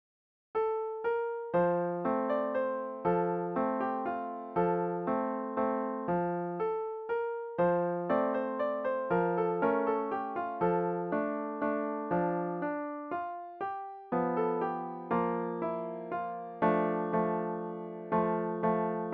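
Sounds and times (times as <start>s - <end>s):
piano: 0.6s - 19.1s.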